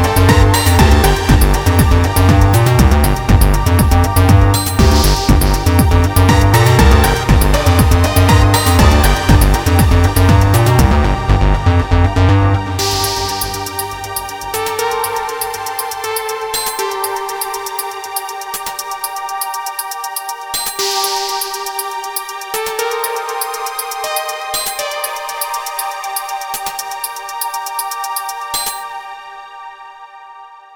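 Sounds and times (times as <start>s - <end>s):
square wave bassline: 0.0s - 27.4s.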